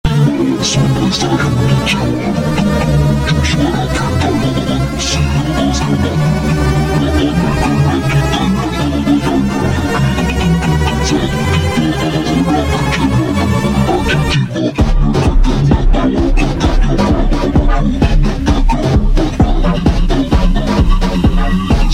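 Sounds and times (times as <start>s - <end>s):
hardbass music: 0.0s - 21.9s.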